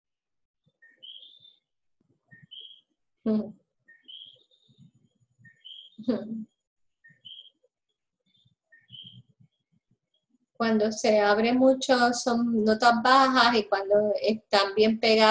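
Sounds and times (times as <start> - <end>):
bird singing: 0.7 - 7.6, 8.3 - 10.3
speech: 3.2 - 3.6, 6.1 - 6.5, 10.6 - 15.2.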